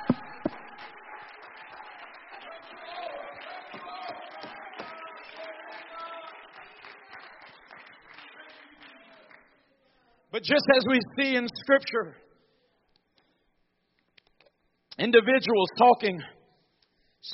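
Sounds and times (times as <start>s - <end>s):
sharp claps: 0.0s - 9.5s
audience applause: 0.0s - 9.6s
speech: 10.4s - 12.3s, 15.0s - 16.4s.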